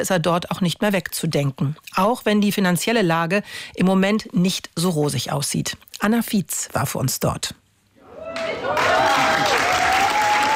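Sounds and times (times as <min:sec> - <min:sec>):
speech: 0:00.0 - 0:07.6
thunderous applause for youth theatre: 0:08.3 - 0:10.5.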